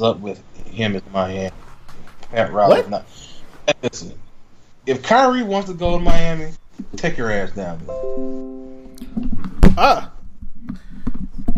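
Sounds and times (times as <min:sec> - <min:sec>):
speech: 0:00.0 - 0:01.6, 0:02.3 - 0:04.2, 0:04.8 - 0:08.5, 0:09.8 - 0:10.1
microphone knocked over: 0:09.1 - 0:11.5.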